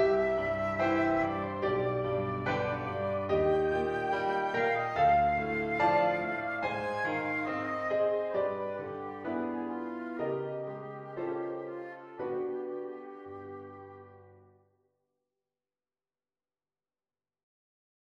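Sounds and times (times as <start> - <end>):
flute playing calmato: 0.0 - 14.6
piano playing calmato: 0.0 - 14.7.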